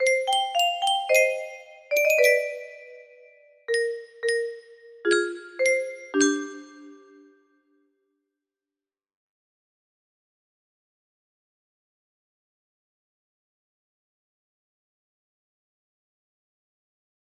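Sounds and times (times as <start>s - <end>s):
melody: 0.0s - 7.4s.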